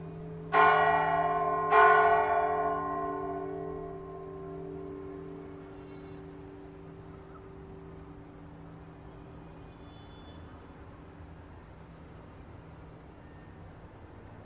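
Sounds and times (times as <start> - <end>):
bell: 0.0 - 5.5.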